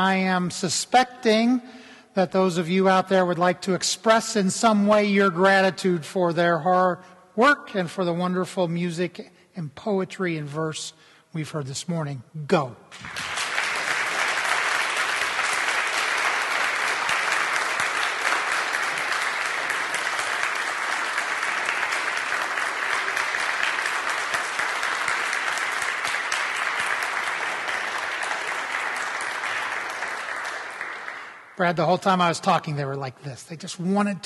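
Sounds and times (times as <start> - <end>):
speech: 0.0 - 13.3, 31.6 - 34.2
audience applause: 13.0 - 31.6.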